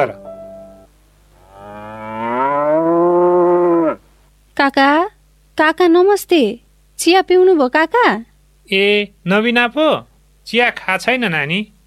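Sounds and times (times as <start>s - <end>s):
speech: 0.0s - 0.2s, 4.7s - 11.7s
cow mooing at feeding time on a household farm: 1.4s - 4.0s.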